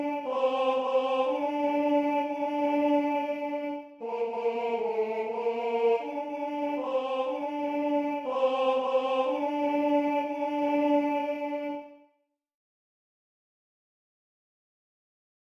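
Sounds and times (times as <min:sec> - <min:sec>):
tenor singing: 0:00.0 - 0:12.0.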